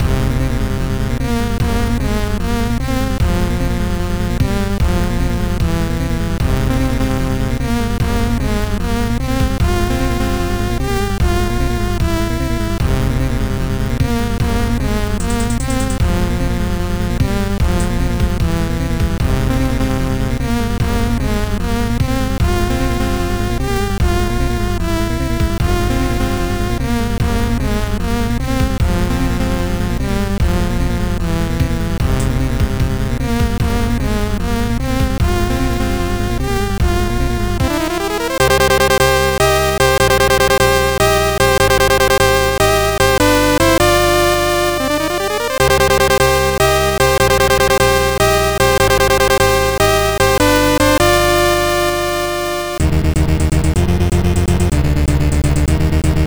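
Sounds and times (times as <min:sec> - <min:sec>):
Amiga in-game music: 0:00.0 - 0:56.2.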